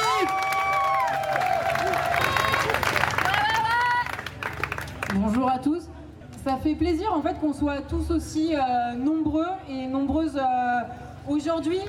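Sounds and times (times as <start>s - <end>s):
crowd applauding: 0.0s - 5.4s
speech: 5.5s - 11.8s.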